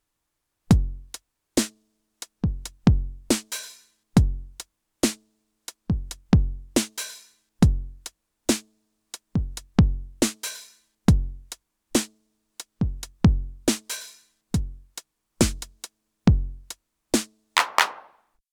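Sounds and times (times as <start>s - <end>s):
Sony DRE 2000 TR909 drum machine, dry: 0.7s - 1.2s, 2.4s - 3.5s, 4.2s - 4.6s, 5.9s - 7.0s, 7.6s - 8.1s, 9.4s - 10.2s, 11.1s - 11.5s, 12.8s - 13.9s, 14.6s - 16.8s, 17.6s - 18.1s.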